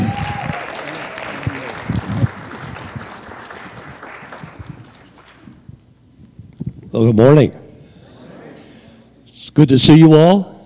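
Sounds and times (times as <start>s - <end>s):
congregation applause at a church service welcoming a pastor: 0.0s - 5.6s
speech: 7.0s - 7.6s, 9.6s - 10.5s.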